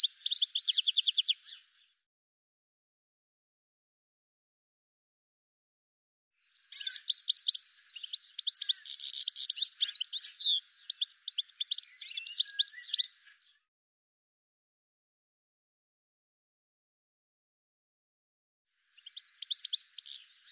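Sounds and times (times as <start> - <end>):
bird calling with rapid high chirps and short trills: 0.0 - 1.6, 6.6 - 13.6, 19.0 - 20.5.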